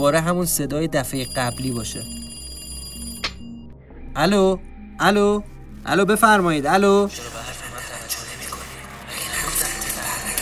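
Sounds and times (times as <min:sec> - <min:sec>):
speech: 0:00.0 - 0:02.2, 0:04.2 - 0:07.4
telephone ringing: 0:00.3 - 0:03.8.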